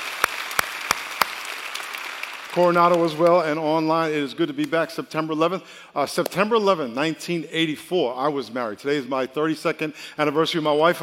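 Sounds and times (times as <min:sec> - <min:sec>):
audience applause: 0:00.0 - 0:03.4
speech: 0:02.6 - 0:11.0.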